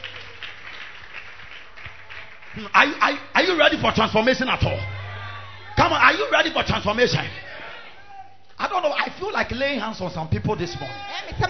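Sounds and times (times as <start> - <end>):
audience clapping hands: 0.0 - 4.0
speech: 2.6 - 5.0, 5.8 - 7.4, 8.7 - 11.4.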